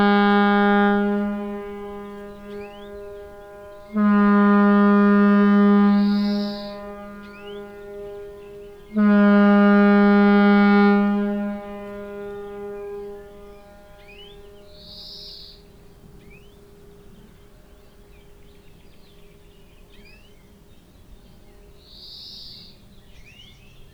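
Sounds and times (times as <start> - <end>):
foghorns on the Reymure plain: 0.0 - 17.8.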